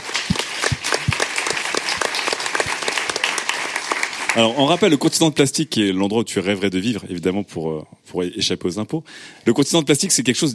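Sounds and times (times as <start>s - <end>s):
audience applause: 0.0s - 5.2s
speech: 4.4s - 10.5s.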